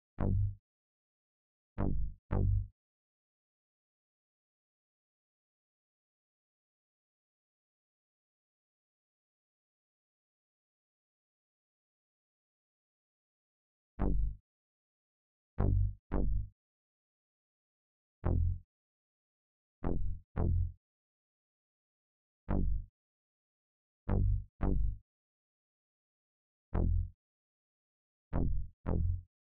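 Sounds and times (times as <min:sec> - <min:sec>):
bass: 0:00.0 - 0:00.6, 0:01.8 - 0:02.7, 0:14.0 - 0:14.4, 0:15.6 - 0:16.5, 0:18.2 - 0:18.6, 0:19.8 - 0:20.8, 0:22.5 - 0:22.9, 0:24.1 - 0:25.0, 0:26.7 - 0:27.2, 0:28.3 - 0:29.3.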